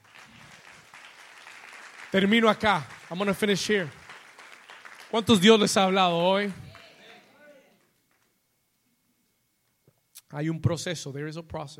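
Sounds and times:
audience applause: 0:00.0 - 0:07.8
speech: 0:02.1 - 0:04.0, 0:05.1 - 0:06.7, 0:10.3 - 0:11.7.

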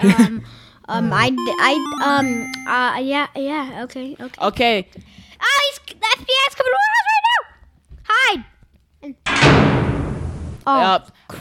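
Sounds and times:
speech: 0:00.0 - 0:07.3, 0:08.1 - 0:09.8, 0:10.6 - 0:11.3
phone ringtone or alert chime: 0:01.4 - 0:02.9.

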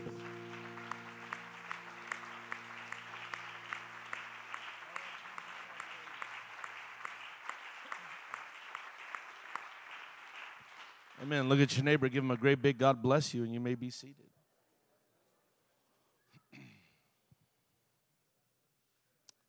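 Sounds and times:
held organ chord: 0:00.0 - 0:05.4
audience clapping hands in dense sustained applause: 0:00.0 - 0:12.6
speech: 0:11.2 - 0:14.3.

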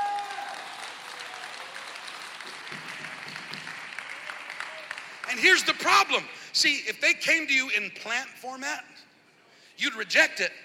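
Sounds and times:
audience clapping: 0:00.0 - 0:06.0
speech: 0:05.4 - 0:09.1, 0:09.8 - 0:10.6.

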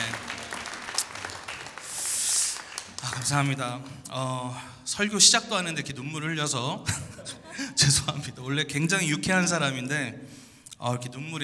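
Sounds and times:
audience applause: 0:00.0 - 0:04.0
speech: 0:03.2 - 0:11.4.

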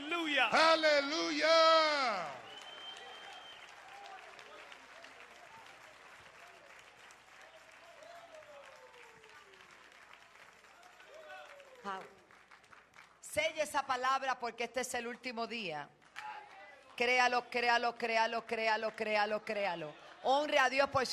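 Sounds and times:
congregation voices shouting: 0:00.0 - 0:02.4
church congregation clapping in praise: 0:00.0 - 0:13.6, 0:15.9 - 0:21.1
speech: 0:00.4 - 0:02.4, 0:11.9 - 0:12.2, 0:13.3 - 0:16.0, 0:17.0 - 0:21.1.

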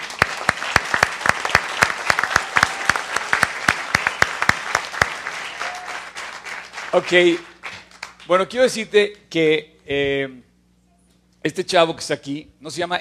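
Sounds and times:
audience applause: 0:00.0 - 0:08.3
speech: 0:07.0 - 0:07.5, 0:08.3 - 0:10.5, 0:11.4 - 0:12.9.

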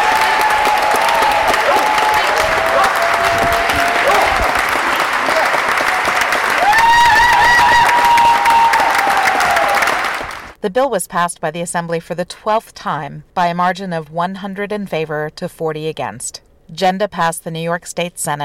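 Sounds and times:
long standing ovation in the chamber: 0:00.0 - 0:10.6
loud cheers from advocates in the chamber: 0:00.0 - 0:10.6
speech: 0:10.6 - 0:18.4.

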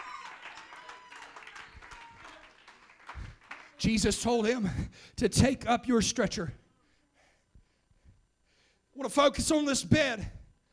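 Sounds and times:
audience clapping: 0:00.0 - 0:04.4
speech: 0:03.8 - 0:06.6, 0:09.1 - 0:10.4.

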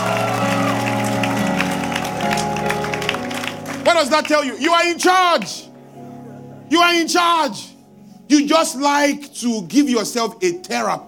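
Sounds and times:
audience clapping: 0:00.0 - 0:04.8
speech: 0:03.9 - 0:05.6, 0:06.7 - 0:07.7, 0:08.3 - 0:11.0.

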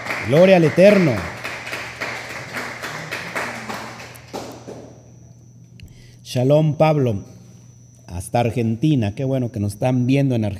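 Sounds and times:
rhythmic clapping: 0:00.0 - 0:05.0
low hum: 0:00.0 - 0:10.5
speech: 0:00.2 - 0:01.3, 0:06.3 - 0:07.3, 0:08.1 - 0:10.5.

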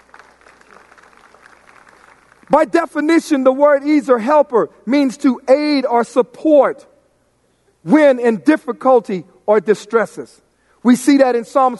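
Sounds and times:
crowd clapping: 0:00.0 - 0:02.6
speech: 0:02.5 - 0:06.9, 0:07.8 - 0:11.7.

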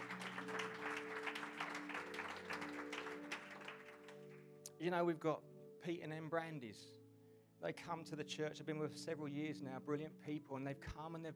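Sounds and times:
audience applause: 0:00.0 - 0:04.5
speech: 0:04.8 - 0:07.0, 0:07.6 - 0:11.3.

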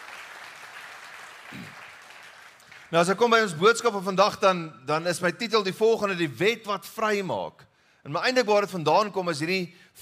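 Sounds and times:
church audience clapping hands in welcome: 0:00.0 - 0:03.3
speech: 0:02.9 - 0:10.0.

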